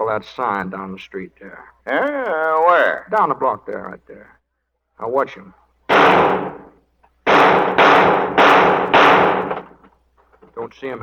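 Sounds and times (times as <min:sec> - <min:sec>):
speech: 0:00.1 - 0:04.4, 0:05.0 - 0:06.4, 0:10.6 - 0:11.0
toy guns fired in a radio drama: 0:05.9 - 0:06.7, 0:07.3 - 0:09.8.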